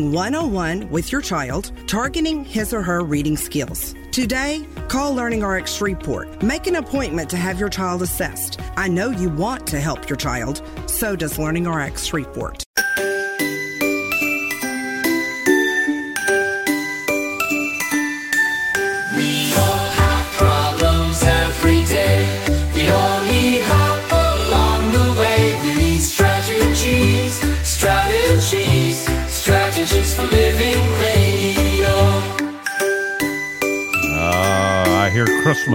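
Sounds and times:
speech: 0.0 - 12.9, 35.2 - 35.7
bells jingling: 12.8 - 35.7.

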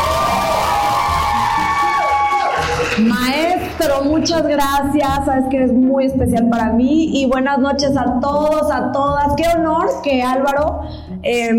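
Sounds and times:
audience applause and cheering: 0.0 - 4.3
speech: 3.0 - 11.5.

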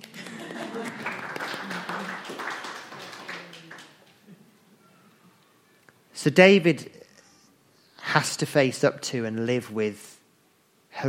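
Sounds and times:
ripple of applause: 0.0 - 4.4
speech: 6.2 - 7.0, 8.2 - 10.2.

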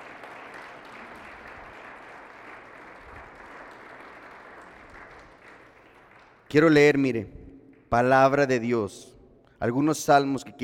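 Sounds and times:
audience applause: 0.0 - 6.5
speech: 6.5 - 10.6.

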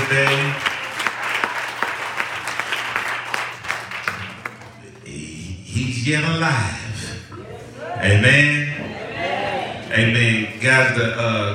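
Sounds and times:
audience hand clapping: 0.0 - 5.0
speech: 6.0 - 6.9, 8.0 - 8.7, 9.9 - 11.5.

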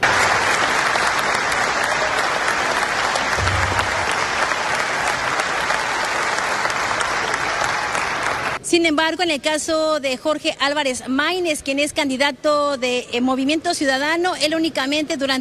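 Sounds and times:
audience applause and ovation: 0.0 - 8.6
speech: 8.8 - 15.3.

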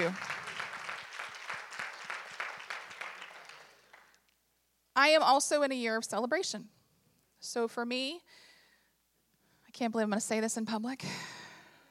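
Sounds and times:
audience applause: 0.0 - 4.2
speech: 5.0 - 6.8, 7.4 - 8.5, 9.8 - 11.3.

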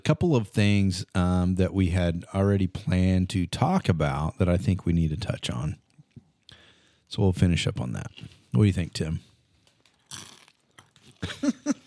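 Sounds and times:
speech: 0.0 - 5.8, 7.1 - 9.3
crunchy munching as someone chews: 9.9 - 11.2.

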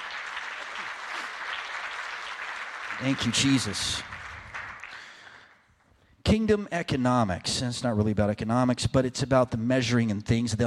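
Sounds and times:
church congregation clapping hands: 0.0 - 5.8
speech: 3.0 - 4.1, 6.4 - 10.6.

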